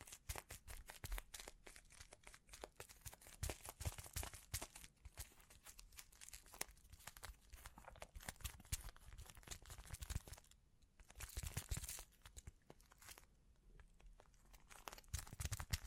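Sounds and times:
quick crinkling and crunching: 0.0 - 15.8.

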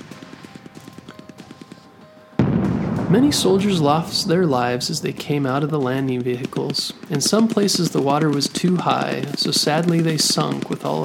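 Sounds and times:
explosions in the sea: 2.4 - 5.8
boat guns firing a barrage: 2.4 - 11.0
speech: 3.1 - 11.0.

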